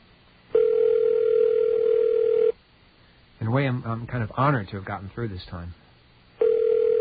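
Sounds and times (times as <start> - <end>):
telephone ringing tone on the line: 0.5 - 2.6, 6.4 - 6.9
speech: 3.6 - 5.8.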